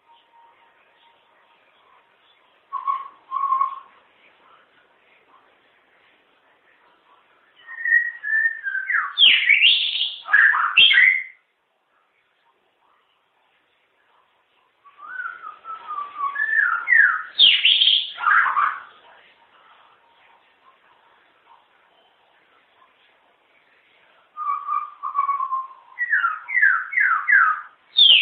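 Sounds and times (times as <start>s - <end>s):
long-tailed shrike chattering and whistling: 2.7s - 3.9s, 7.6s - 11.4s, 14.9s - 18.9s, 24.4s - 28.2s.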